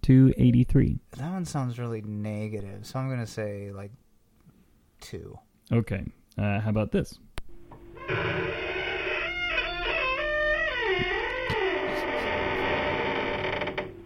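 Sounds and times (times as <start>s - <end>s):
speech: 0.1s - 4.0s, 5.0s - 7.3s, 8.1s - 8.6s
long creaking door: 7.6s - 14.0s.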